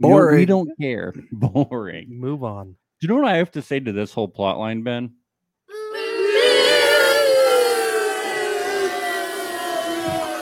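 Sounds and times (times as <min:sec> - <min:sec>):
speech: 0:00.0 - 0:05.2
kids in a crowd hissing: 0:05.7 - 0:10.3.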